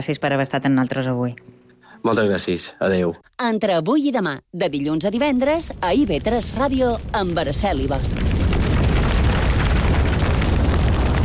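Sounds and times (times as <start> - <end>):
speech: 0.0 - 8.4
fire burning and crackling: 4.8 - 11.2.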